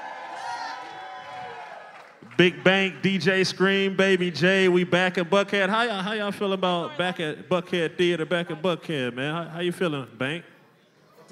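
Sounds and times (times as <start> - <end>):
live audience cheering: 0.0 - 3.4
speech: 2.4 - 10.5.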